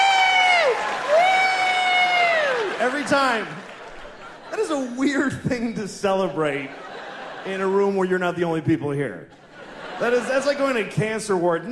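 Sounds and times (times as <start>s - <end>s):
person whooping in a comedy show audience: 0.0s - 2.7s
comedy show audience clapping: 0.0s - 5.0s
laughter: 2.8s - 8.5s, 9.3s - 11.6s
speech: 2.9s - 3.7s, 4.5s - 9.4s, 10.0s - 11.6s.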